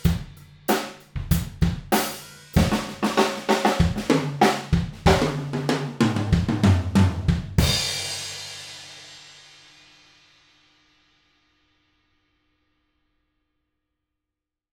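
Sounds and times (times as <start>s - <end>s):
drum recorded in a room with a mono cardioid microphone: 0.0s - 9.5s.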